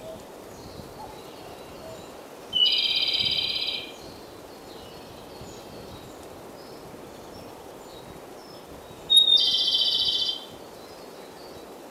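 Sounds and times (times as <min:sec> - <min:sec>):
Japanese robin singing loud high trilled phrases: 0:02.6 - 0:04.0, 0:09.1 - 0:10.5.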